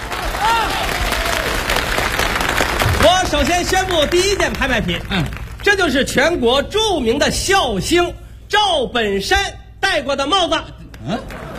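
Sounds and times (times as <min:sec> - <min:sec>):
audience applause: 0:00.0 - 0:05.7, 0:11.2 - 0:11.5
speech: 0:03.3 - 0:11.4.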